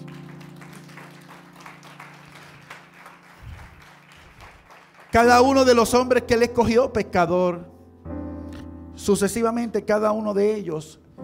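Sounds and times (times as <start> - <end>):
audience applause: 0.0 - 5.5
speech: 5.1 - 7.7, 9.0 - 11.0.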